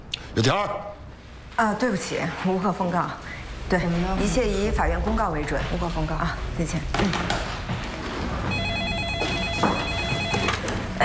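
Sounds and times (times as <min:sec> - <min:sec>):
speech: 0:00.4 - 0:01.0, 0:01.6 - 0:07.6
telephone ringing: 0:08.4 - 0:11.0.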